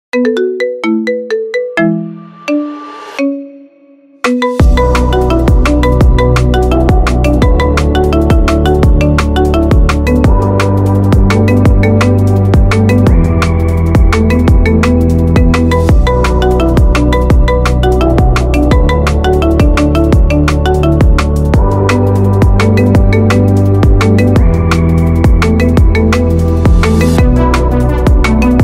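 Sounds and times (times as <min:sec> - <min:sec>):
marimba ringtone: 0:00.1 - 0:28.6.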